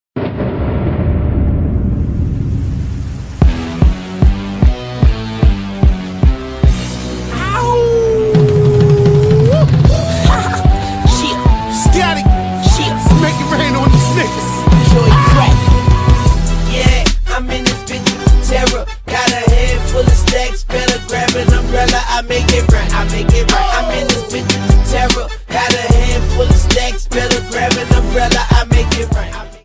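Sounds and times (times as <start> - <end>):
theme music: 0.2 - 29.6.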